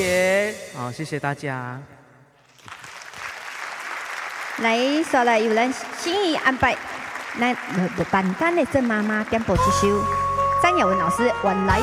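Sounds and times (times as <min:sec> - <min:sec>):
speech: 0:00.0 - 0:02.0, 0:04.6 - 0:11.8
audience applause: 0:02.5 - 0:10.1.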